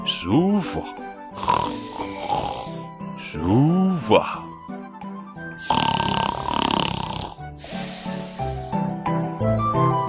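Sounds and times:
speech: 0:00.2 - 0:04.5
tent piglet snoring: 0:01.4 - 0:02.8, 0:05.6 - 0:08.9.

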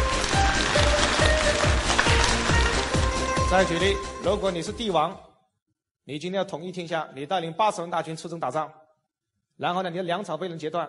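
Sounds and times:
audience applause: 0:00.0 - 0:03.9
speech: 0:03.5 - 0:05.3, 0:06.1 - 0:08.8, 0:09.6 - 0:10.8.

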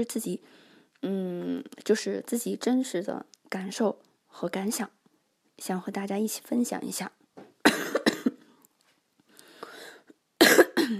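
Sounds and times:
speech: 0:00.0 - 0:05.0, 0:05.6 - 0:07.2
cough: 0:07.6 - 0:08.4, 0:10.4 - 0:10.9.

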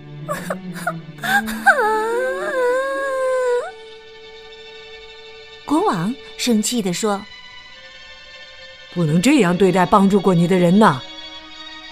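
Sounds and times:
speech: 0:00.3 - 0:02.7, 0:05.7 - 0:07.4, 0:09.0 - 0:11.1
princess from the Frog Prince fairy tale crying: 0:00.3 - 0:03.8.

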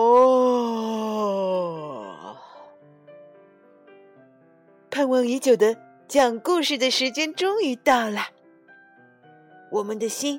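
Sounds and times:
person acting out a big drawn-out yawn: 0:00.0 - 0:02.7
speech: 0:05.0 - 0:08.4, 0:09.7 - 0:10.3.

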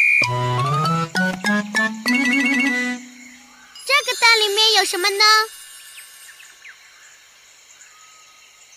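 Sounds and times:
speech: 0:00.2 - 0:00.7, 0:04.3 - 0:05.5
toy whistle blowing: 0:00.2 - 0:03.4.

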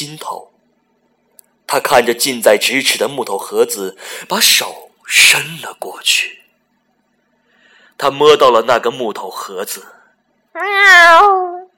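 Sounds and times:
speech: 0:00.0 - 0:00.6, 0:01.7 - 0:06.4, 0:08.0 - 0:10.0, 0:10.6 - 0:11.6
cat meowing outdoors in the grass: 0:10.6 - 0:11.7.

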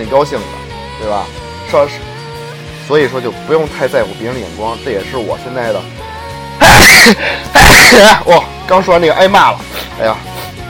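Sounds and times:
speech: 0:00.0 - 0:02.1, 0:02.9 - 0:06.1, 0:06.9 - 0:10.3
person sneezing: 0:06.6 - 0:08.1.

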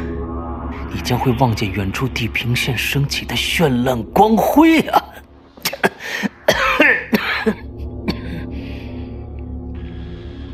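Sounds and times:
speech: 0:00.9 - 0:05.2
violent coughing: 0:04.6 - 0:08.5.

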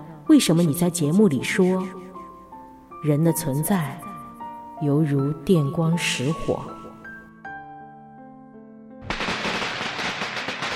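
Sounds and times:
speech: 0:00.3 - 0:02.0, 0:03.0 - 0:04.0, 0:04.8 - 0:06.8
distant firecrackers popping: 0:09.0 - 0:10.7.

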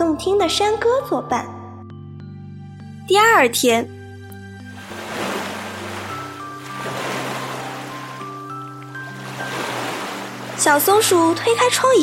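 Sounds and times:
soft sustained music tones: 0:00.0 - 0:12.0
speech: 0:00.1 - 0:01.6, 0:03.1 - 0:04.0, 0:10.6 - 0:12.0
ocean waves washing ashore: 0:04.7 - 0:12.0.

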